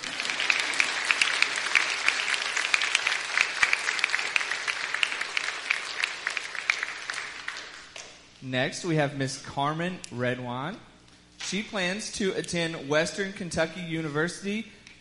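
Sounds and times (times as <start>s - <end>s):
audience clapping: 0.0s - 8.1s
speech: 8.5s - 10.9s, 11.5s - 14.8s.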